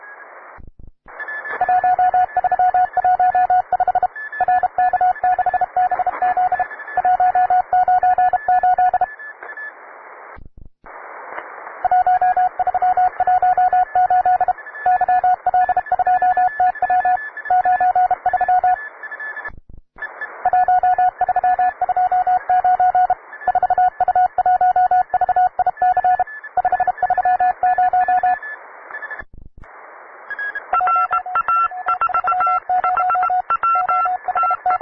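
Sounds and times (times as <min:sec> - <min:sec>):
advanced morse code beeps: 0:01.2 - 0:09.7, 0:11.8 - 0:29.2, 0:30.3 - 0:34.8.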